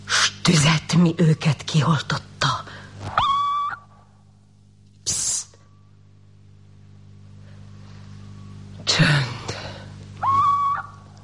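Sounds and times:
faint low hum: 0:00.0 - 0:11.2
speech: 0:00.5 - 0:02.3
little owl screeching at night, radio drama effect: 0:03.1 - 0:04.0, 0:10.2 - 0:11.1.

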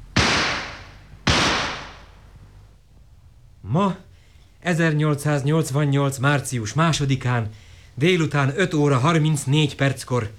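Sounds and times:
signal gunshots fired at a lake on an 1888 expedition: 0:00.0 - 0:02.3
speech: 0:03.7 - 0:10.3.

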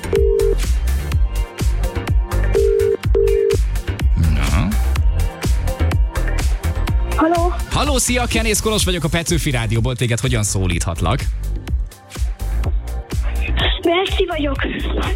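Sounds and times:
telephone dialing and ringing tones: 0:00.0 - 0:00.6, 0:02.5 - 0:03.6
loud rhythmic music bed with a punchy beat: 0:00.0 - 0:15.1
speech: 0:07.9 - 0:11.5, 0:13.8 - 0:15.1.

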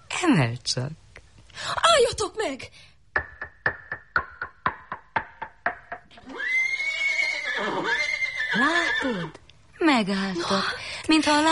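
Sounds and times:
speech: 0:00.2 - 0:01.0, 0:01.6 - 0:02.9, 0:08.6 - 0:11.4
rhythmic hoof-like knocks: 0:03.1 - 0:06.2
dapple-grey horse whinny: 0:06.2 - 0:09.4.

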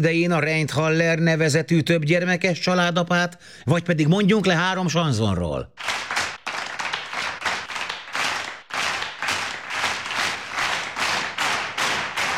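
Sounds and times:
speech: 0:00.0 - 0:05.9
thunderous rhythmic crowd applause: 0:05.8 - 0:12.3.

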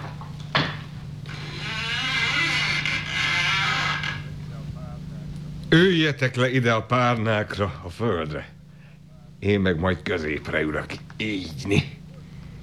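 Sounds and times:
door being opened: 0:00.6 - 0:04.4
speech: 0:05.7 - 0:08.6, 0:09.4 - 0:11.9.

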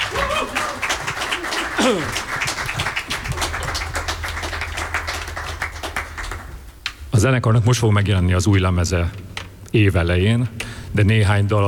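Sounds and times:
audience applause: 0:00.0 - 0:06.6
speech: 0:01.8 - 0:02.4, 0:07.2 - 0:11.6.

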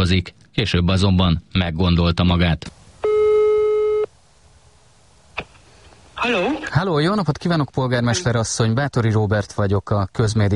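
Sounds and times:
speech: 0:00.0 - 0:02.8, 0:06.2 - 0:10.5
telephone line tone: 0:03.0 - 0:04.1.

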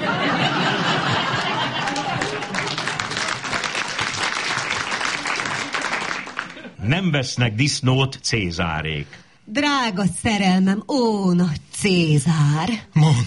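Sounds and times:
laughter: 0:00.0 - 0:03.8, 0:06.2 - 0:06.9
applause mixed in as sound effect: 0:01.2 - 0:06.6
speech: 0:06.9 - 0:13.2.

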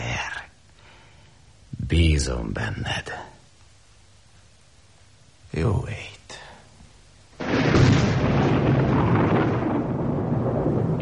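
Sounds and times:
speech: 0:01.9 - 0:03.3, 0:05.5 - 0:06.4
thunder: 0:07.4 - 0:11.0.

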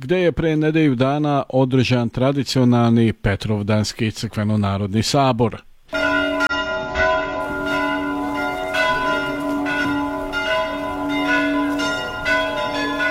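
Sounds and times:
speech: 0:00.0 - 0:05.7
monastery church bell ringing: 0:05.9 - 0:13.1.

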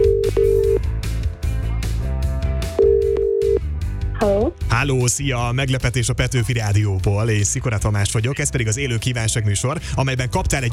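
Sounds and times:
electronic telephone ringing tone: 0:00.0 - 0:00.8, 0:02.8 - 0:03.6
music: 0:00.0 - 0:10.7
speech: 0:04.2 - 0:10.7.

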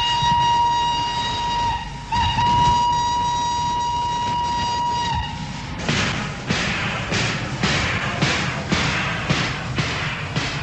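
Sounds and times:
train whistle: 0:00.0 - 0:05.8
rumbling railway carriages: 0:00.0 - 0:10.6.

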